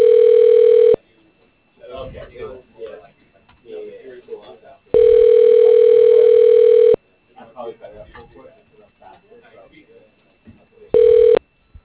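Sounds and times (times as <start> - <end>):
ringback tone of an outgoing phone call: 0.0 - 1.0, 5.0 - 7.0, 11.0 - 11.4.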